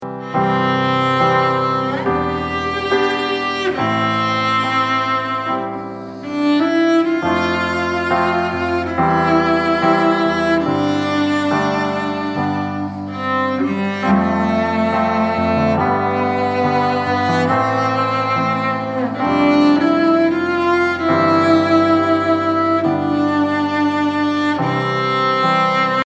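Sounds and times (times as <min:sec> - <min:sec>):
cello playing: 0:00.0 - 0:26.0.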